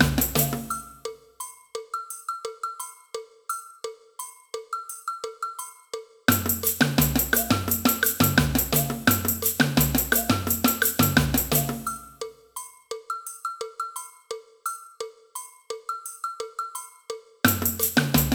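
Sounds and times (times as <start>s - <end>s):
agogo bell in a samba band: 0.0s - 18.3s
cowbell in a samba band: 0.0s - 18.3s.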